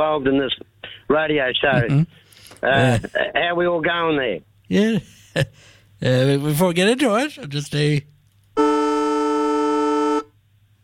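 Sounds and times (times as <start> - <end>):
speech: 0.0 - 8.7
football extra time siren: 8.6 - 10.3.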